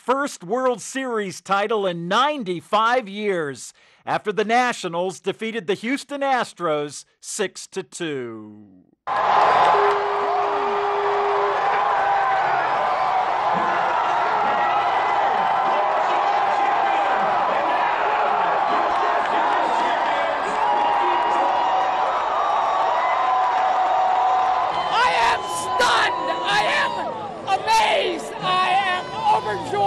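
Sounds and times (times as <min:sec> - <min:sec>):
speech: 0:00.0 - 0:10.4
baseball fans cheering the Washington Nationals' World Series win at Nationals Park: 0:09.1 - 0:29.8.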